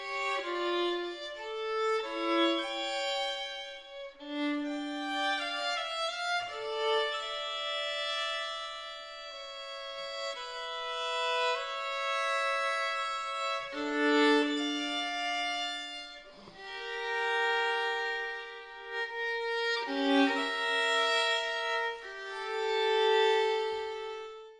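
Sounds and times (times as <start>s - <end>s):
solo violin partita in D minor: 0.0s - 24.5s.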